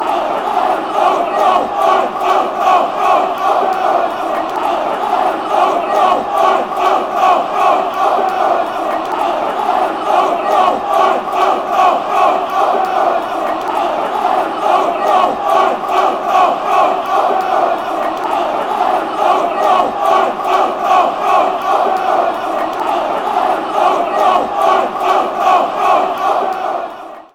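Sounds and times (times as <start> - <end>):
people chanting: 0.0 - 27.3.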